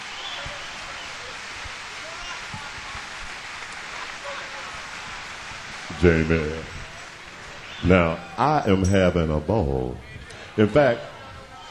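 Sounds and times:
audience applause: 0.0s - 8.7s
speech: 6.0s - 6.8s, 7.8s - 11.1s.

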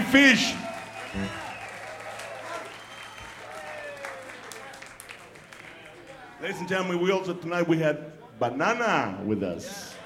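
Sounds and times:
audience applause: 0.0s - 6.4s
indistinct voices and cheers: 0.0s - 7.1s
speech: 0.1s - 1.4s, 6.4s - 10.0s.

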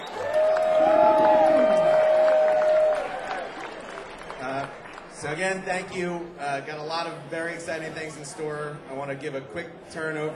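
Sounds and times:
crowd applauding and cheering: 0.0s - 5.7s
speech: 5.4s - 10.3s.

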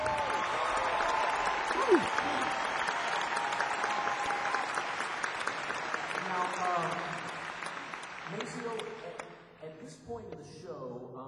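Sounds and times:
whoop or cheer: 0.0s - 5.0s
audience applause: 0.0s - 9.4s.

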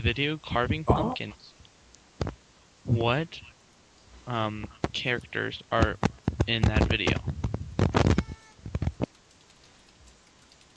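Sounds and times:
speech: 0.0s - 1.6s, 2.9s - 3.5s, 4.3s - 7.4s
keyboard typing: 8.1s - 10.7s.

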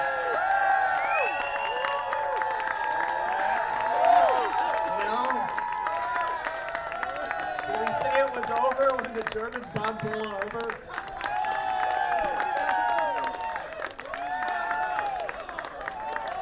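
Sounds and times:
large crowd shouting and whooping: 0.0s - 16.4s
speech: 9.3s - 11.0s.

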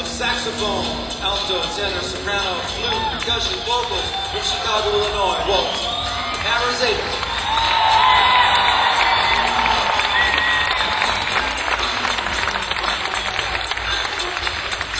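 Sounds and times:
speech: 0.2s - 7.2s
crowd applauding: 0.8s - 14.9s
cheers and whoops: 2.8s - 13.8s.

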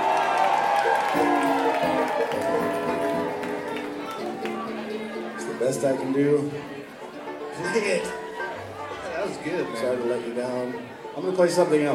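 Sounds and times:
audience applause: 0.0s - 5.4s
crowd voices and cheers: 0.0s - 11.9s
speech: 5.7s - 6.7s, 7.6s - 8.2s, 9.2s - 11.9s.

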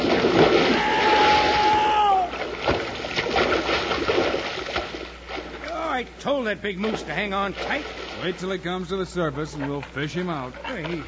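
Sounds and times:
big logs splashing into a lake: 0.0s - 5.9s, 6.8s - 8.4s
churning lake water: 0.0s - 11.0s
speech: 6.2s - 11.0s.

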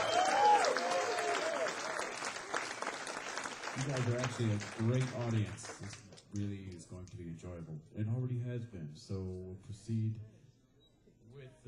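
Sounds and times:
audience applauding the drummer at a live jazz concert: 0.0s - 6.8s
speech: 3.8s - 10.3s, 11.4s - 11.6s.

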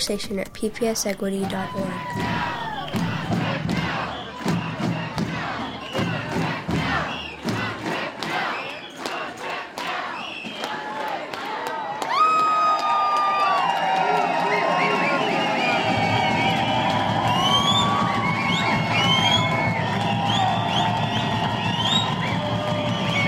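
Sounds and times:
speech: 0.0s - 3.1s
teachers and supporters cheering and shouting at a march: 1.3s - 23.2s
rhythmic percussive beats: 2.0s - 11.5s, 15.0s - 23.2s
shrill whistles: 3.8s - 7.7s, 8.3s - 9.3s, 10.0s - 10.9s, 13.6s - 23.2s.

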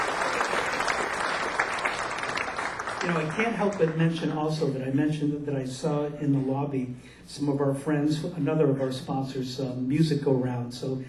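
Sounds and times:
audience applause at an evening arts event: 0.0s - 4.2s
speech: 3.0s - 11.0s.

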